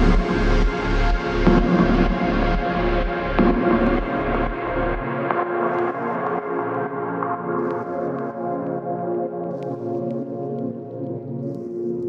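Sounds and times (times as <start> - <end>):
ambient soundscape: 0.0 - 12.0.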